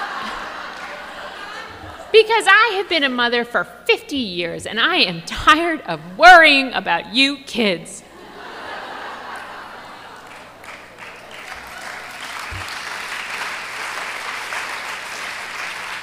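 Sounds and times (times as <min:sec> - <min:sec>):
crowd clapping: 0:00.0 - 0:02.1, 0:09.2 - 0:16.0
scattered chuckles: 0:01.4 - 0:02.1
speech: 0:02.2 - 0:08.0.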